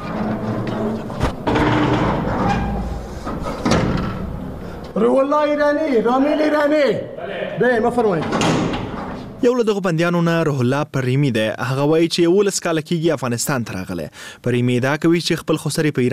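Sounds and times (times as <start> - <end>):
iron door at Herat prison opened by a guard: 0.0 - 5.0, 7.8 - 9.4
speech: 5.0 - 8.6, 9.4 - 16.1.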